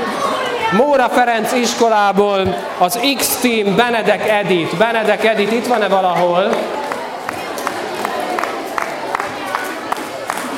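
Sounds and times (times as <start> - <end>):
murmur of voices: 0.0 - 10.5
speech: 0.7 - 6.6
crowd clapping and cheering: 4.9 - 10.5.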